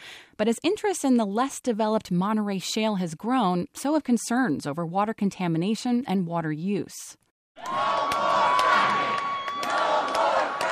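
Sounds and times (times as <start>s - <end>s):
speech: 0.4s - 8.2s
protest crowd chanting and shouting: 7.6s - 10.7s.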